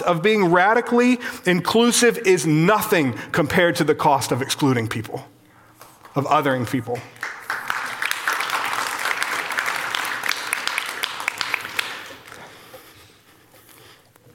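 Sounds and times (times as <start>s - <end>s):
speech: 0.0s - 5.4s, 6.2s - 7.3s
audience clapping: 6.9s - 12.8s.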